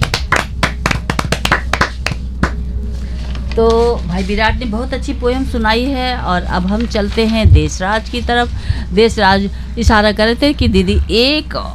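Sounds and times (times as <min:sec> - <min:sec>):
children clapping: 0:00.0 - 0:02.6
low room hum: 0:00.0 - 0:11.7
speech: 0:03.6 - 0:11.7.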